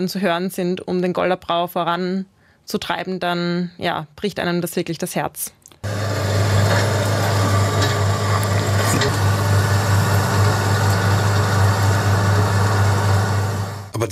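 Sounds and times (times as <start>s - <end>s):
speech: 0.0s - 5.6s
excavator diesel engine idling: 5.8s - 13.9s
faint scattered knocks and clatter: 6.0s - 12.6s.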